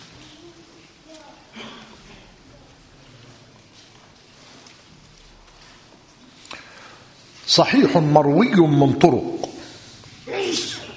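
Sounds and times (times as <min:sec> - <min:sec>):
speech: 0:07.5 - 0:09.4
sneeze: 0:10.3 - 0:10.9.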